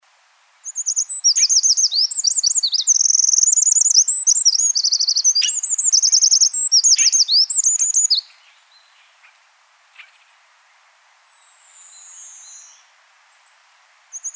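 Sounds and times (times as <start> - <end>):
Eurasian wren trilling song: 0.6 - 9.4, 14.1 - 14.3.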